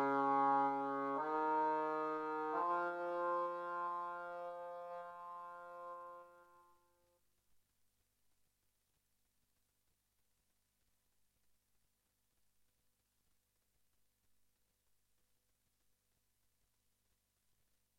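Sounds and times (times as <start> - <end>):
musical accompaniment: 0.0 - 6.7.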